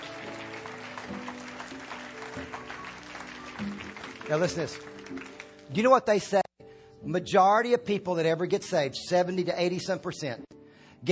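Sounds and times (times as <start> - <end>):
audience applause: 0.0 - 5.7
speech: 4.3 - 6.4, 7.1 - 11.1.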